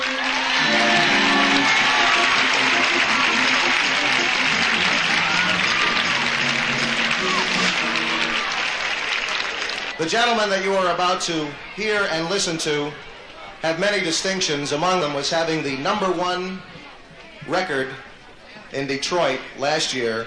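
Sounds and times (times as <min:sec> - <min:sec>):
audience applause: 0:00.0 - 0:10.1
speech: 0:10.0 - 0:16.8, 0:17.5 - 0:18.1, 0:18.7 - 0:20.2.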